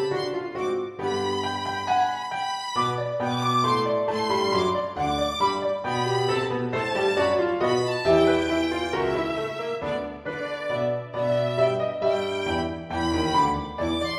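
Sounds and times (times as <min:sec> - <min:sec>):
backing track: 0:00.1 - 0:14.1.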